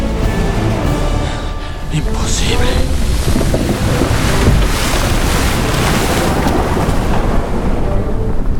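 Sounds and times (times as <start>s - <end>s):
waves and surf around a boat on open sea: 0.0s - 8.5s
strong gusting wind at sea: 1.7s - 8.5s
speech: 2.0s - 3.5s.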